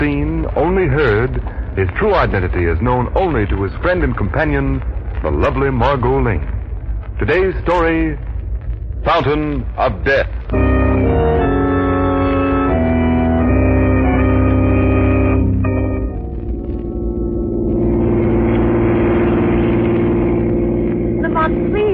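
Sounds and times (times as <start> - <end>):
speech: 0.7 - 6.6, 7.2 - 8.3, 9.0 - 10.6
held tonal chords: 10.5 - 21.9
car engine droning as the car drives along: 11.8 - 21.9.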